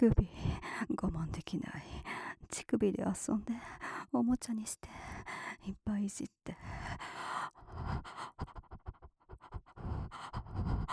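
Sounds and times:
speech: 0.0 - 7.2
person panting heavily: 6.6 - 10.9.

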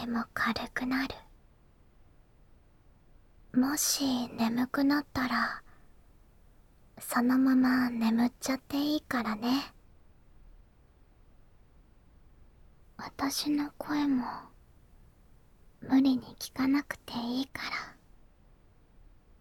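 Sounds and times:
ASMR whispering: 0.0 - 1.3, 3.5 - 5.8, 7.0 - 9.8, 13.0 - 14.6, 15.8 - 18.1.

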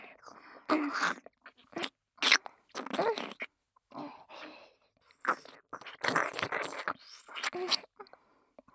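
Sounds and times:
wet ear licking and mouth sounds: 0.7 - 3.5, 5.1 - 7.9.

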